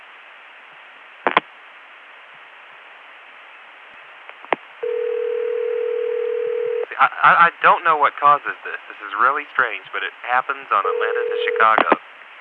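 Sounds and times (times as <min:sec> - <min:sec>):
hiss on a long-distance telephone line between Atlanta and Chicago: 0:04.8 - 0:06.9, 0:10.7 - 0:12.0
steady low telephone dial tone: 0:04.8 - 0:06.9
speech: 0:07.0 - 0:12.0.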